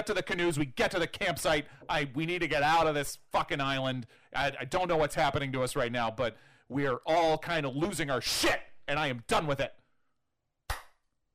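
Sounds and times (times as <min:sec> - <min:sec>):
speech: 0:00.0 - 0:09.8
slow clapping: 0:10.7 - 0:11.0.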